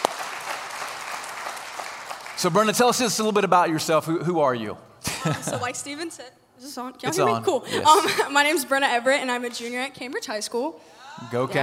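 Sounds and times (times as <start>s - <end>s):
audience applause: 0.0s - 2.8s
speech: 2.4s - 11.6s.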